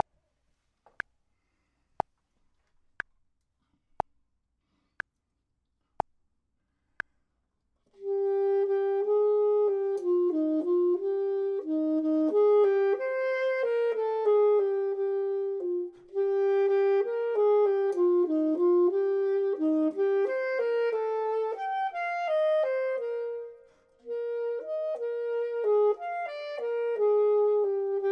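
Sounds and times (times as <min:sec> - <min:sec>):
clarinet: 0:08.0 - 0:28.1
saxophone: 0:08.0 - 0:28.1.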